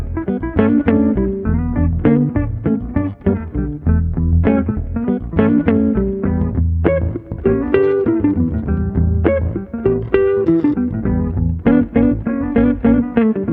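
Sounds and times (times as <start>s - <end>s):
laidback bass guitar groove: 0.0s - 13.5s.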